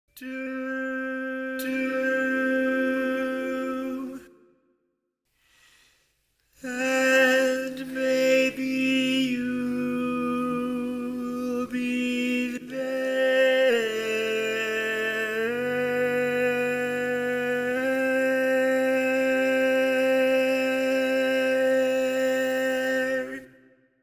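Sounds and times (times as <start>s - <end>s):
barbershop tags lead voice: 0.2s - 4.3s, 6.6s - 23.5s.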